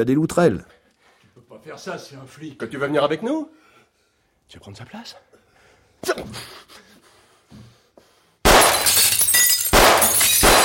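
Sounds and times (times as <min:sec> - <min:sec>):
speech: 0:00.0 - 0:00.7, 0:01.6 - 0:03.6, 0:04.5 - 0:05.3, 0:06.0 - 0:06.8
gunshots shattering glass bottles: 0:08.5 - 0:10.6.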